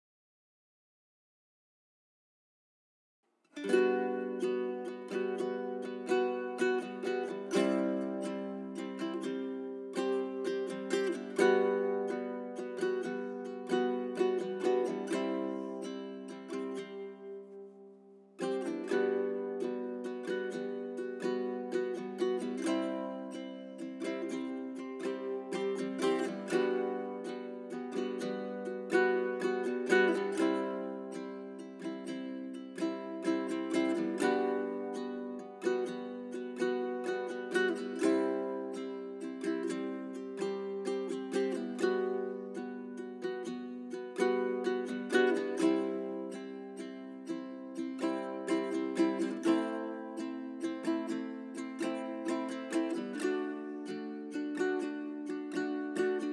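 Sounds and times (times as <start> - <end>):
ukulele: 3.4 - 56.3.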